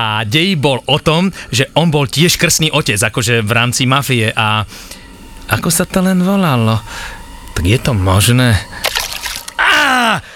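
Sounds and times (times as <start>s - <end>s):
speech: 0.0s - 8.9s, 10.0s - 10.3s
water poured over someone: 8.8s - 9.6s
person crying out: 9.6s - 10.3s.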